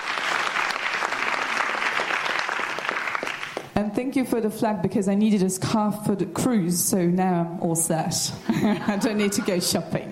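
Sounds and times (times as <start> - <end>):
audience applause: 0.0 - 3.7
speech: 3.8 - 10.1
laughter: 8.4 - 9.9.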